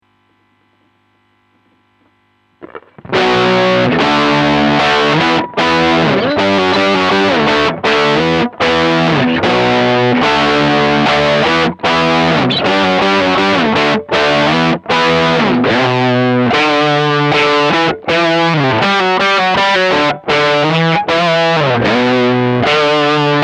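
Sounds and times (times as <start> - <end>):
lead melody: 3.0 - 23.4.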